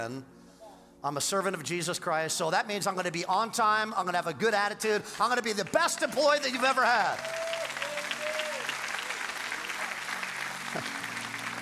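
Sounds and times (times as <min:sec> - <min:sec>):
speech: 0:00.0 - 0:00.4, 0:01.0 - 0:07.4
audience clapping: 0:04.9 - 0:11.6.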